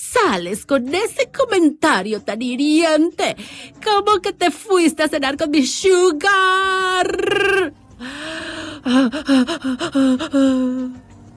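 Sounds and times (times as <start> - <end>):
speech: 0.3 - 11.1
person imitating anxious gasping breaths: 8.0 - 11.0.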